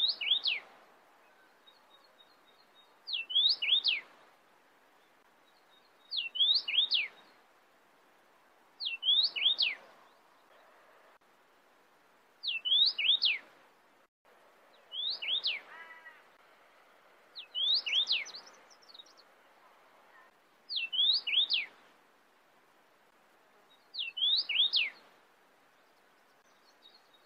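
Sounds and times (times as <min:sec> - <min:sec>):
cardinal singing sweeping whistled phrases: 0:00.0 - 0:00.6, 0:03.1 - 0:04.0, 0:06.1 - 0:07.1, 0:08.8 - 0:09.8, 0:12.4 - 0:13.4, 0:14.9 - 0:15.6, 0:17.4 - 0:18.4, 0:20.7 - 0:21.7, 0:24.0 - 0:25.0.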